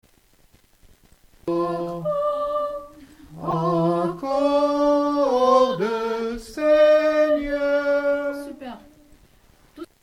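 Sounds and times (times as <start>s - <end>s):
tenor singing: 1.5s - 9.2s.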